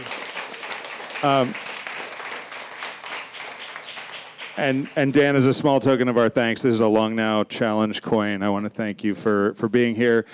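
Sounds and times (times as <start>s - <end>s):
audience applause: 0.0s - 5.2s
speech: 1.2s - 1.7s, 4.6s - 10.3s.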